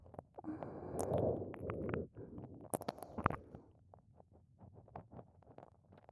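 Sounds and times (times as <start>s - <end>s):
wet ear licking: 0.5s - 3.6s.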